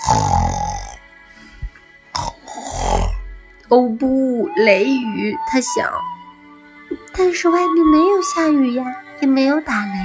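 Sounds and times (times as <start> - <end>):
bear cub snoring: 0.0 - 1.0, 2.2 - 3.3
speech: 3.7 - 6.2, 7.0 - 10.0.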